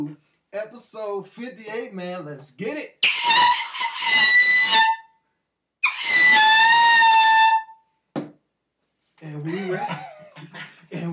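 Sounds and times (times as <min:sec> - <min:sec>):
speech: 0:00.0 - 0:05.0, 0:09.2 - 0:10.1
air horn: 0:03.0 - 0:05.1, 0:05.8 - 0:07.8
laughter: 0:09.4 - 0:11.1.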